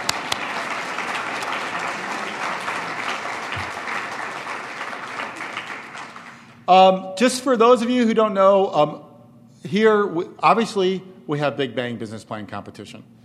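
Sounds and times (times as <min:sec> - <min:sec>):
audience applause: 0:00.0 - 0:06.6
speech: 0:06.7 - 0:13.2.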